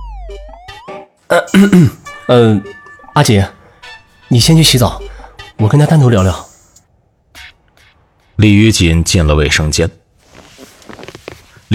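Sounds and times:
speech: 0:00.3 - 0:00.6, 0:01.4 - 0:03.6, 0:04.3 - 0:06.5, 0:08.4 - 0:10.0
throat clearing: 0:01.3 - 0:02.1.

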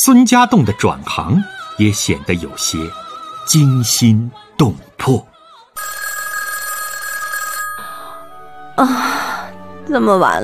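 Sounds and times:
speech: 0:00.0 - 0:06.0, 0:08.8 - 0:09.3, 0:09.9 - 0:10.4
telephone ringing with a bright electronic trill: 0:05.8 - 0:08.7.

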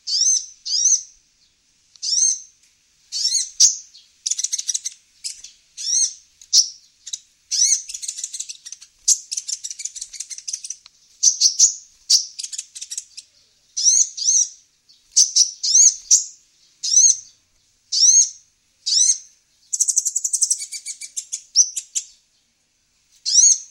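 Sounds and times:
female Van Hasselt's sunbird singing: 0:00.0 - 0:23.6.

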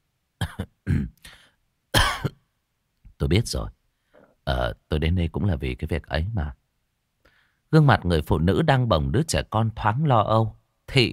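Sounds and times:
young man coughing and clearing his throat: 0:00.4 - 0:01.3, 0:02.0 - 0:02.4
speech: 0:03.2 - 0:03.8, 0:04.5 - 0:06.6, 0:07.7 - 0:11.1.

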